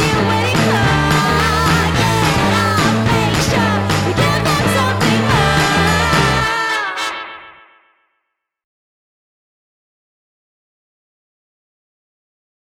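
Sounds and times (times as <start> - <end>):
people singing: 0.0 - 7.2.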